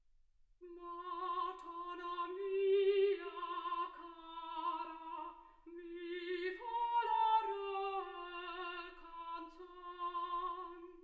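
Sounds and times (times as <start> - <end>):
soprano singing: 0.6 - 11.0.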